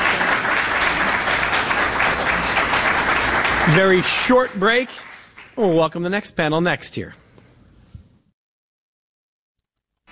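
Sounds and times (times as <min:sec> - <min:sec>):
crowd applause: 0:00.0 - 0:05.6
speech: 0:03.7 - 0:07.2.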